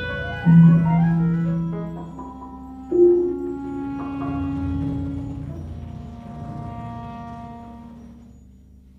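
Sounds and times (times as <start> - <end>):
sarabande dance music: 0.2 - 5.5.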